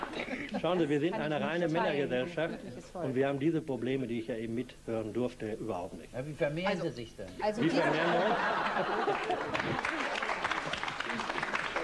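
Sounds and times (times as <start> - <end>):
laughter: 0.0 - 1.4, 7.6 - 11.6
speech: 0.2 - 10.0
applause from the men in audience: 8.8 - 11.8.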